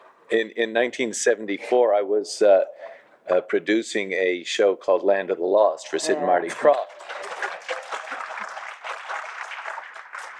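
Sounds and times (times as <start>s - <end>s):
speech: 0.3s - 7.3s
crowd clapping: 6.4s - 10.3s.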